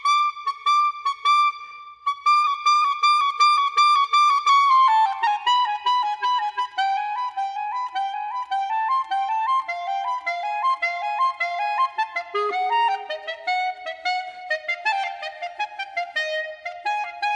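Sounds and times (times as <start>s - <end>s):
E-flat clarinet: 0.0s - 17.3s.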